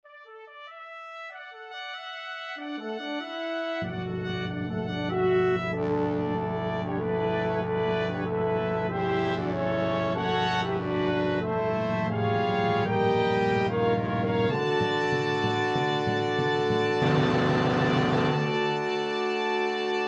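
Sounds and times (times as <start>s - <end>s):
opening fanfare: 2.8s - 19.6s.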